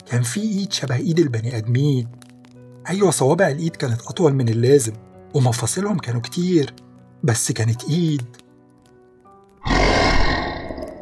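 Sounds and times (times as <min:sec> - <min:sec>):
speech: 0:00.1 - 0:02.2, 0:02.8 - 0:08.4
creature growling: 0:09.6 - 0:11.0.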